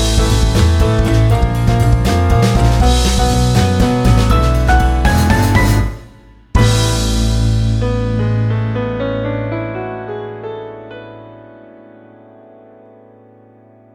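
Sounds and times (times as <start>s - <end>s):
background music: 0.0s - 9.6s.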